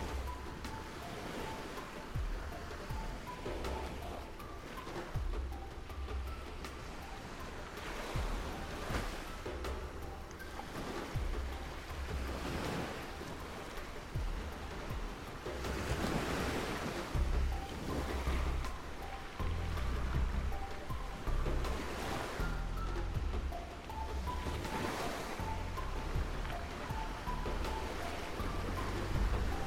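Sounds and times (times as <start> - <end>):
ambient ocean: 0.0 - 29.6.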